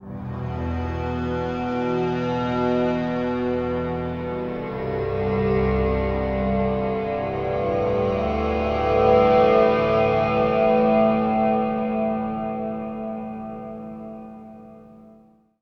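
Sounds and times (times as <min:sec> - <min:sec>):
acoustic drone: 0:00.3 - 0:15.1.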